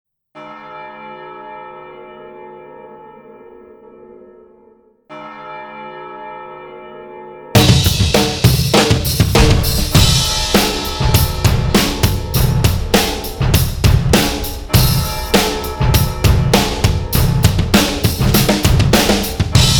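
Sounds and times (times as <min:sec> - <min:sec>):
drums: 0:07.6 - 0:19.7.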